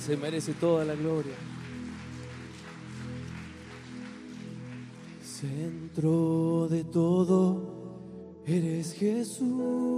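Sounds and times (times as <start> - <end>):
speech: 0.0 - 1.6, 5.4 - 7.7, 8.5 - 9.9
audience applauding: 0.0 - 6.4.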